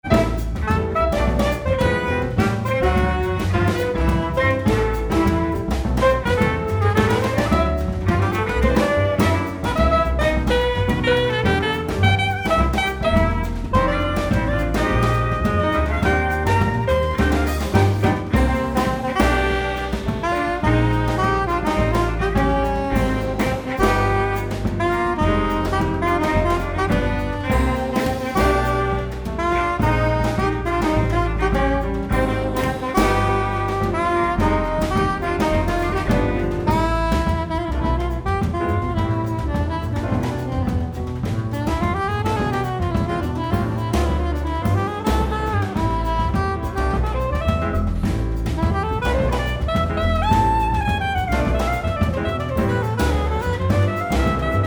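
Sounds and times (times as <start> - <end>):
bossa nova music: 0.0 - 54.6.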